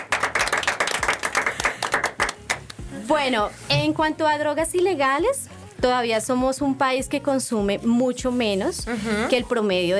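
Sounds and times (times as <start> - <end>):
audience applauding young people who quit smoking: 0.0 - 2.7
speech: 3.1 - 9.9.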